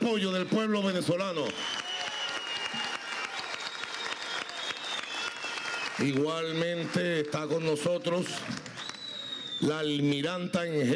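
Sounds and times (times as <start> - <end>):
speech: 0.1 - 1.8, 6.0 - 8.7, 9.6 - 10.9
large audience in Venezuela applauding an army major general: 1.1 - 9.6.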